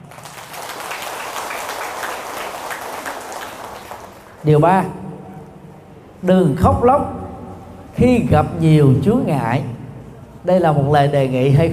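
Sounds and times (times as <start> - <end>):
audience applause: 0.0 - 4.4
speech: 4.4 - 5.0, 6.2 - 7.2, 8.0 - 9.7, 10.4 - 11.7.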